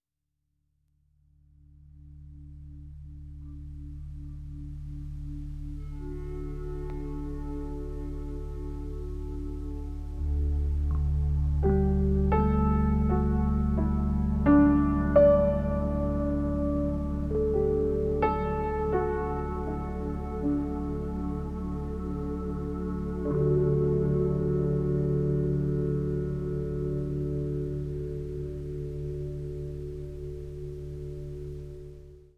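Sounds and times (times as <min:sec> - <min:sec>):
page music: 0:00.9 - 0:32.3.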